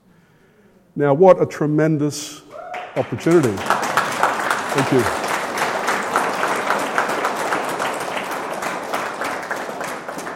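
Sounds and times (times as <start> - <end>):
speech: 1.0 - 2.4, 3.0 - 3.8, 4.7 - 5.2
audience applause: 2.7 - 10.3.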